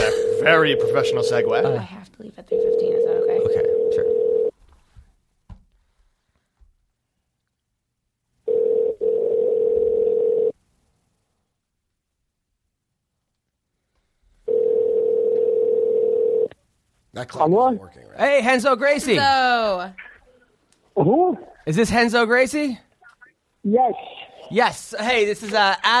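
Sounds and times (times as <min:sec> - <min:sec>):
outgoing phone call buzzing tones: 0:00.0 - 0:01.9, 0:02.5 - 0:04.5, 0:08.5 - 0:10.5, 0:14.5 - 0:16.5
speech: 0:00.4 - 0:04.1, 0:17.2 - 0:20.1, 0:21.0 - 0:22.9, 0:23.6 - 0:25.9
soft clicks and thumps: 0:04.6 - 0:06.8.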